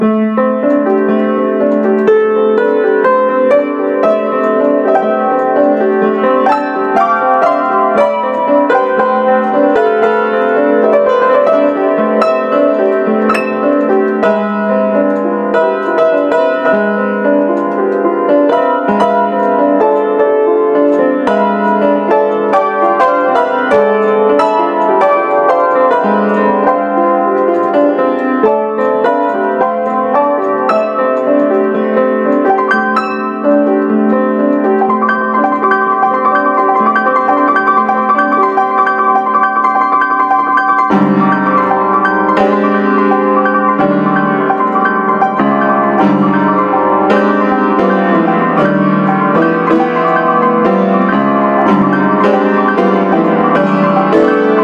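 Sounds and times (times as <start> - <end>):
piano improvisation: 0.0 - 54.6.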